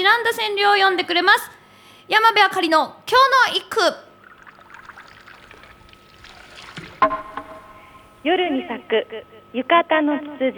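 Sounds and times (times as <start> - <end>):
speech: 0.2 - 4.0, 8.2 - 10.5
shishi-odoshi bamboo water fountain clack: 4.2 - 7.8.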